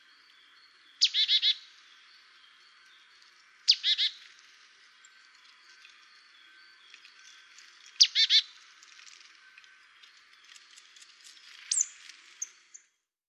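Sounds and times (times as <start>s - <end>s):
marsh tit calling: 1.0s - 1.8s, 3.7s - 4.3s, 8.0s - 8.6s.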